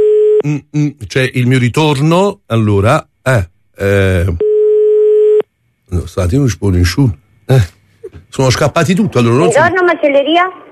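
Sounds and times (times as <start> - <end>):
telephone line tone while calling a butcher's shop in Oliveto Citra: 0.0 - 0.4, 4.4 - 5.4
speech: 0.4 - 4.5, 5.9 - 10.6.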